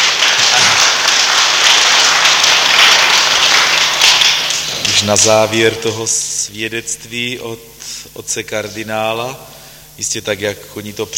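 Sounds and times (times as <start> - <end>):
audience applause: 0.0 - 5.0
speech: 5.0 - 11.1.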